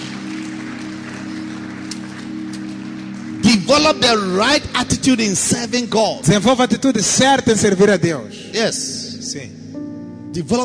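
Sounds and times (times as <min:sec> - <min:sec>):
audience clapping hands: 0:00.0 - 0:05.7
speech: 0:03.7 - 0:09.6, 0:10.3 - 0:10.6.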